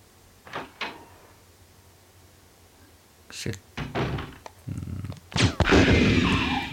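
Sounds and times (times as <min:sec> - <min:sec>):
gunshots in the Resident Evil video game: 0:05.4 - 0:06.7.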